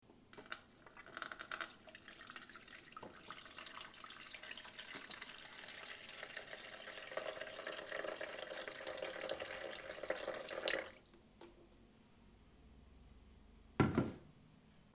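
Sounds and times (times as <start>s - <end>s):
water in coffee machine: 0.4s - 11.0s.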